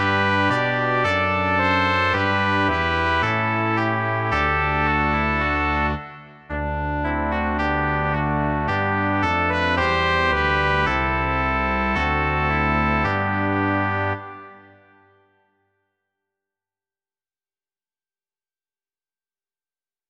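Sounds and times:
brass quartet: 0:00.0 - 0:15.0.

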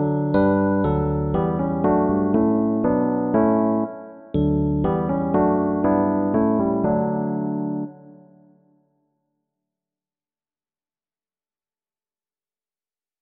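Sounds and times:
jazz piano: 0:00.0 - 0:07.9.

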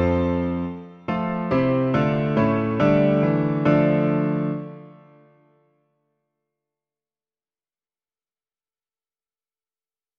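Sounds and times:
piano version of a hymn: 0:00.0 - 0:05.6.

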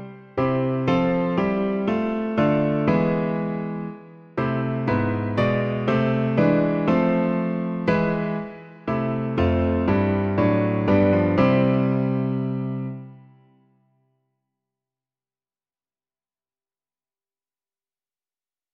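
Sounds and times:
piano: 0:00.0 - 0:13.8.

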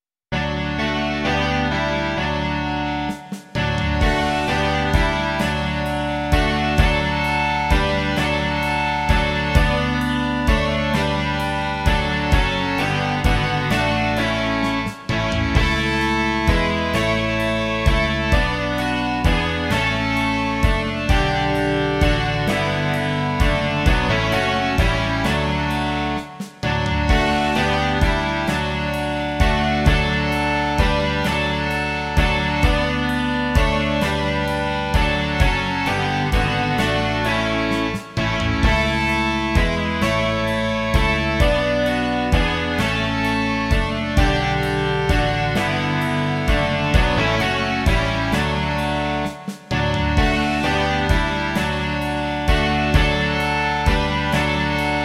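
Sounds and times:
rock music: 0:00.3 - 0:55.0.

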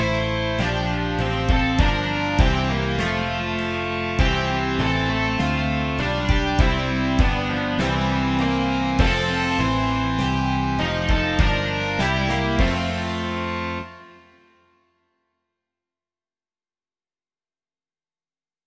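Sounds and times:
rock music: 0:00.0 - 0:14.2.

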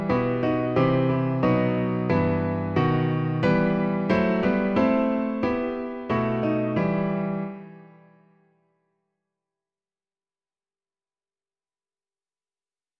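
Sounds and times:
piano version: 0:00.0 - 0:08.2.

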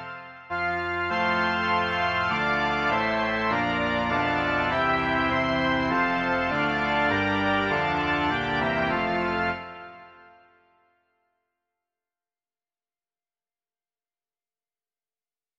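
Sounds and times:
organ: 0:00.0 - 0:10.6.

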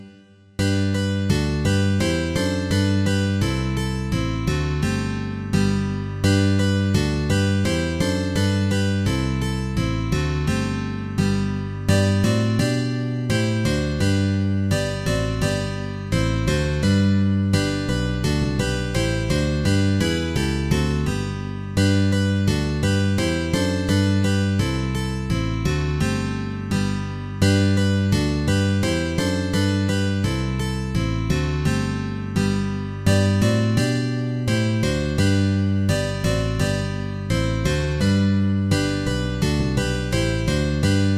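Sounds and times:
bass guitar: 0:00.6 - 0:41.1.

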